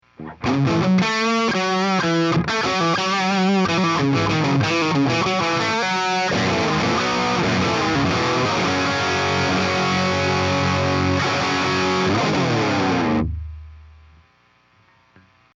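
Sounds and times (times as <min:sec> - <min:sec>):
Brit 2204 amplifier model tone: 0:00.0 - 0:15.5.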